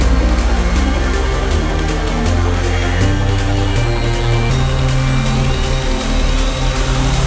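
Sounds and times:
music loop at 160 bpm: 0.0 - 7.1.

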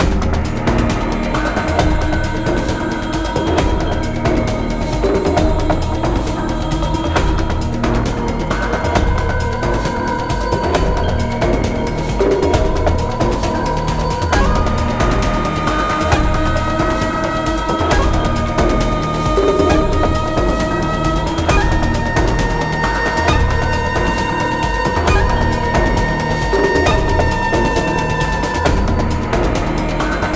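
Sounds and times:
music loop: 0.0 - 30.3.

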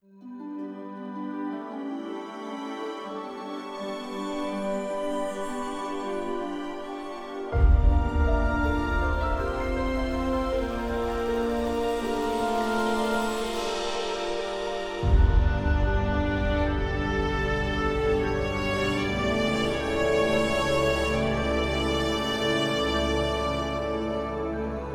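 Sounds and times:
forest music: 0.0 - 24.9.

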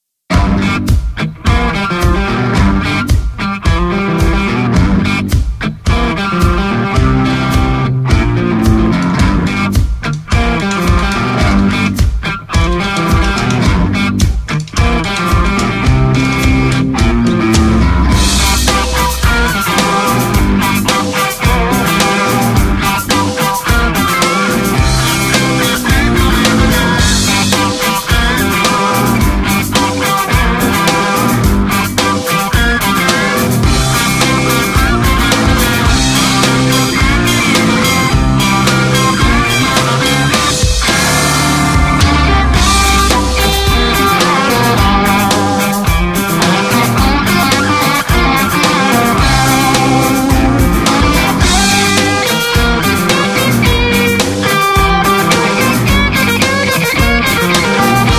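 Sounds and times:
blues music: 0.3 - 58.1.

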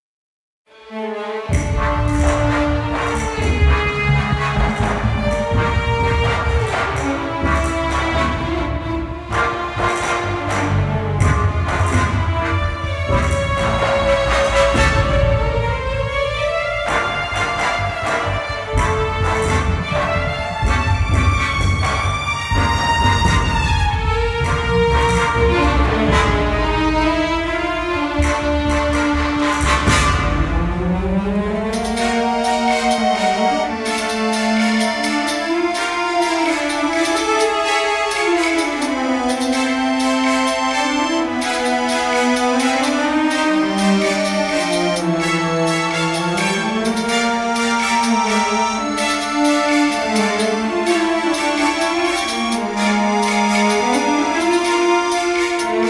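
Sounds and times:
combat music loop: 1.4 - 55.8.

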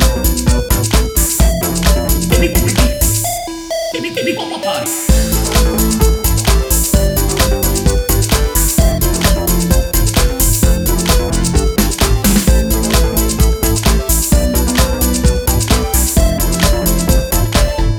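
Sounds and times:
menu music loop: 0.0 - 17.9.

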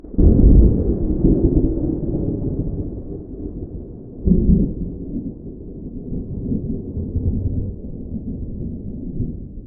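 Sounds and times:
distant tropical thunder: 0.1 - 9.6.

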